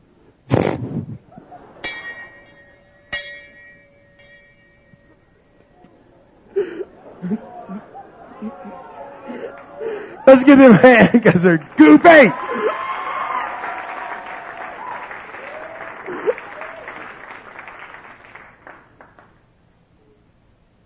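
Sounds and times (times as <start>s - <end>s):
laughter: 1.2s - 2.5s, 5.8s - 14.6s, 15.6s - 17.1s
bell ringing: 1.6s - 6.4s
speech: 10.3s - 12.4s.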